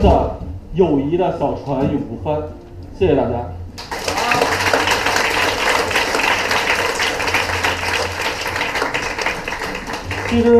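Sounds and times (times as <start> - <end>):
speech: 0.0 - 4.0, 10.3 - 10.5
audience applause: 3.8 - 10.5.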